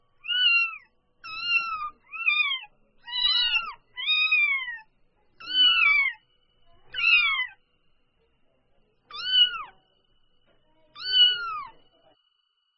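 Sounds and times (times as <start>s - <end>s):
domestic cat kitten mewing: 0.2s - 6.2s, 6.9s - 7.6s, 9.1s - 9.8s, 10.9s - 11.7s.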